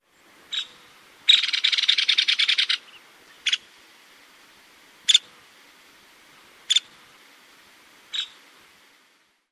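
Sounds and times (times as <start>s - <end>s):
calls: 0.5s - 3.7s.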